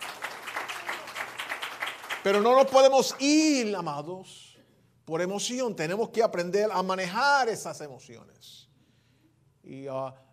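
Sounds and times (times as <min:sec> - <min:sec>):
audience applause: 0:00.0 - 0:03.1
speech: 0:02.2 - 0:04.5, 0:05.1 - 0:08.7, 0:09.6 - 0:10.2.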